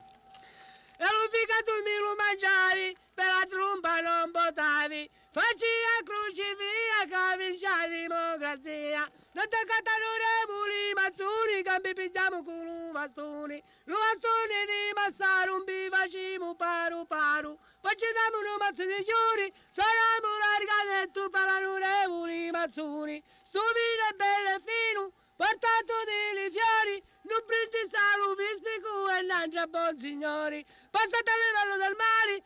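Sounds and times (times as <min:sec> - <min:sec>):
canto a dispetto folk singing: 0:00.9 - 0:32.4.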